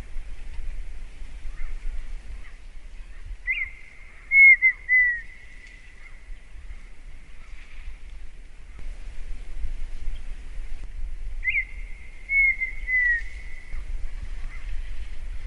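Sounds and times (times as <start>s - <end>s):
partridge whistling: 3.4s - 5.8s, 11.4s - 13.7s.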